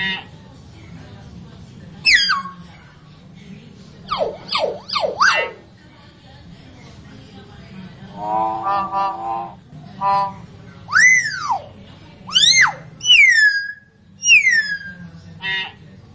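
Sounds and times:
common hill myna whistling song: 0:02.0 - 0:02.7, 0:04.1 - 0:05.6, 0:08.2 - 0:11.7, 0:12.3 - 0:15.0.

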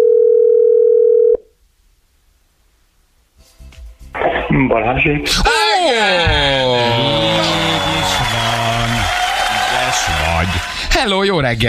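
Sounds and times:
telephone dial tone placing a call to a radio listener: 0:00.0 - 0:01.4
speech: 0:04.6 - 0:08.8, 0:10.0 - 0:11.6
laughter: 0:05.4 - 0:10.9.

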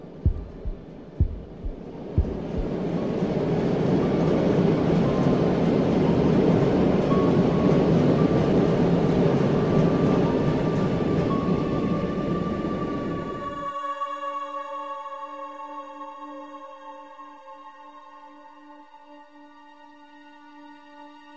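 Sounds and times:
low thuds: 0:00.0 - 0:02.8
approaching train roaring: 0:00.0 - 0:13.4.

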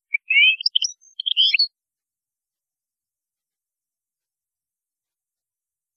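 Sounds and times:
European goldfinch twittering: 0:00.1 - 0:01.7.

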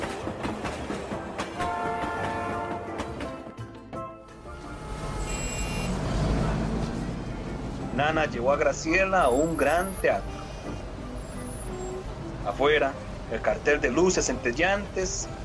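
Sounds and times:
train heading into a city centre running on rails: 0:00.0 - 0:15.4
sustained horn-like tones: 0:01.6 - 0:03.2, 0:04.5 - 0:06.6
speech: 0:08.0 - 0:10.4, 0:12.5 - 0:15.4.

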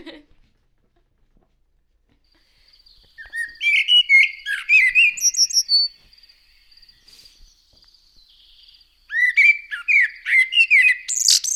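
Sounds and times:
common blackbird singing: 0:02.6 - 0:11.5.

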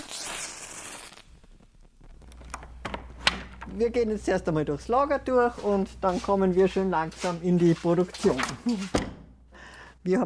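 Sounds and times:
match struck to light a candle: 0:00.0 - 0:02.6
speech: 0:03.8 - 0:09.1, 0:10.0 - 0:10.2.

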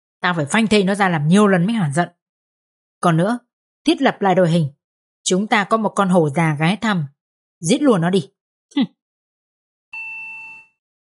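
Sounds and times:
speech: 0:00.2 - 0:02.2, 0:03.0 - 0:09.0
elevator arrival chime signalling the lift reached the 7th floor: 0:10.0 - 0:10.8.

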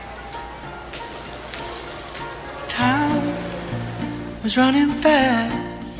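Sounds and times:
small splashes and trickles: 0:00.8 - 0:04.7
water lapping softly around a boat hull: 0:00.9 - 0:05.0
speech: 0:04.5 - 0:05.6.

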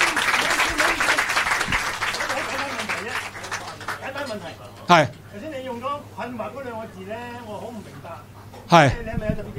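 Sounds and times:
audience applause welcoming a speaker: 0:00.0 - 0:04.8
speech: 0:04.9 - 0:05.2, 0:06.3 - 0:09.4.

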